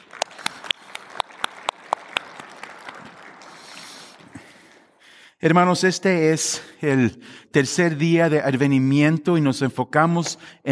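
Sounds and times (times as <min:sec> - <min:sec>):
audience applause: 0:00.0 - 0:05.0
speech: 0:05.4 - 0:10.6.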